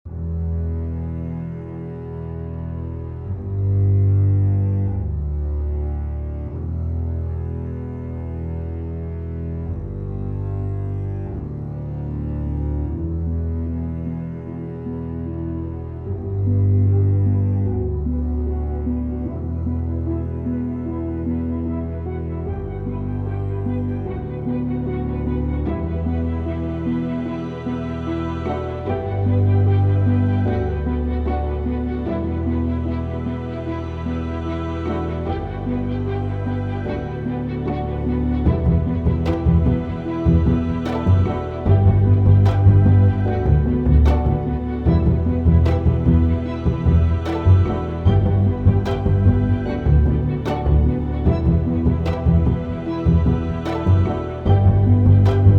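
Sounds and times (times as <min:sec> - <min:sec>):
orchestral music: 0:00.1 - 0:55.5.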